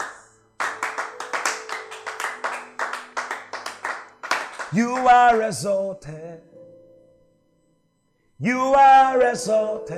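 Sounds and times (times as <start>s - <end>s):
audience clapping: 0.0s - 5.5s
faint sustained musical tone: 0.1s - 9.9s
speech: 4.7s - 6.6s, 8.4s - 9.9s.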